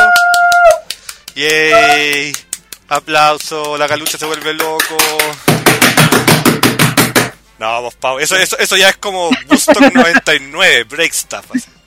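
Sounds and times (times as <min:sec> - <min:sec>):
speech: 0:01.4 - 0:05.9, 0:07.6 - 0:11.8
hand banging on a table: 0:04.9 - 0:07.4
laughter: 0:09.3 - 0:10.4.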